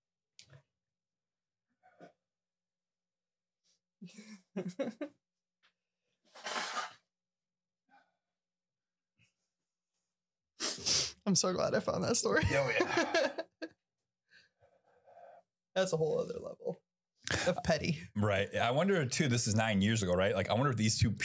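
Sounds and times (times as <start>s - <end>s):
speech: 4.0s - 5.3s, 11.3s - 13.4s, 15.8s - 21.2s
laughter: 4.1s - 5.1s, 12.4s - 13.7s
person blowing nose: 6.3s - 7.1s, 10.6s - 11.2s
sniffs and snorts: 6.3s - 7.1s.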